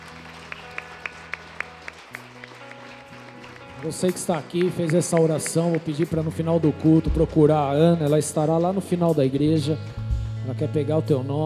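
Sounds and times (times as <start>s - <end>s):
group clapping in a steady rhythm: 0.0s - 6.8s
sustained organ-like chords: 0.0s - 11.4s
speech: 3.8s - 11.4s.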